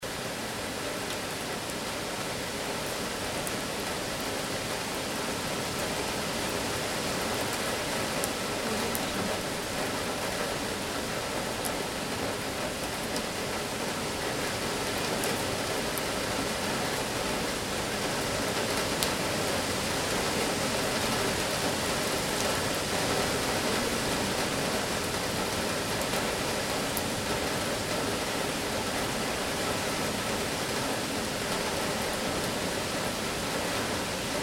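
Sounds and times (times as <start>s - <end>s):
rain on a roof: 0.0s - 34.4s.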